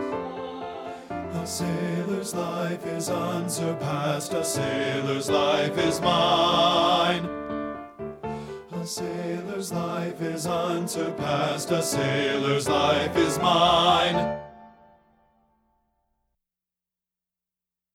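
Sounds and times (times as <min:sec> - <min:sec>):
men singing bass in a choir: 0:00.0 - 0:07.4, 0:08.5 - 0:14.3.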